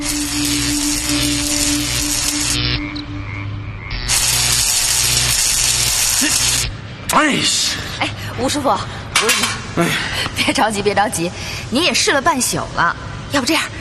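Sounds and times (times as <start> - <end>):
welding torch sizzling: 0.0 - 2.8, 3.9 - 6.8
speech: 7.2 - 13.7.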